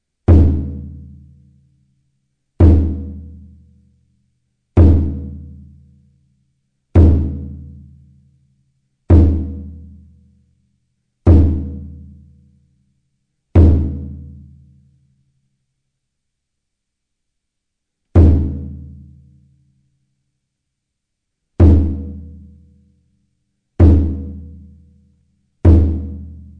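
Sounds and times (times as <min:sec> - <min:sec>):
taiko drums: 0:00.3 - 0:01.1, 0:02.6 - 0:03.4, 0:04.8 - 0:05.5, 0:07.0 - 0:07.8, 0:09.1 - 0:09.9, 0:11.3 - 0:12.0, 0:13.6 - 0:14.4, 0:18.2 - 0:19.0, 0:21.6 - 0:22.3, 0:23.8 - 0:24.6, 0:25.7 - 0:26.5.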